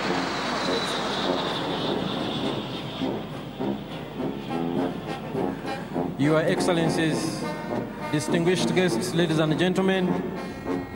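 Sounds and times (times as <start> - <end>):
Puma military aircraft flying in formation over a parade ground: 0.0 - 10.9
speech: 6.2 - 7.4, 8.1 - 10.9.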